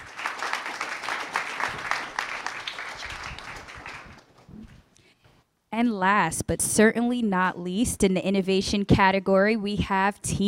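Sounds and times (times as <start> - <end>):
audience applause: 0.0 - 4.4
speech: 5.8 - 10.4.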